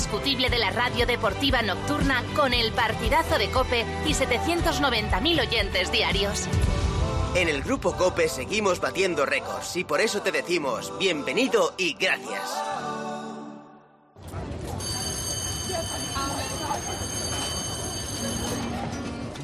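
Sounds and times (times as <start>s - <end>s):
speech: 0.1s - 12.8s
shrill school alarm bell signalling class start: 14.8s - 19.3s.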